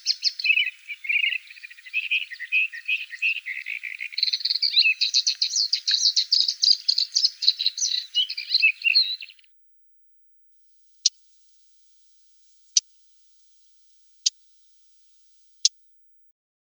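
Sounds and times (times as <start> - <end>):
Blyth's reed warbler song: 0.0 - 9.5.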